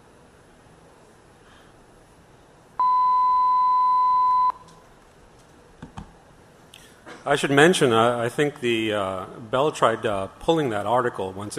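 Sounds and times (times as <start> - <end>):
telephone signaling tone over VoIP call: 2.8 - 4.6
speech: 7.2 - 11.5.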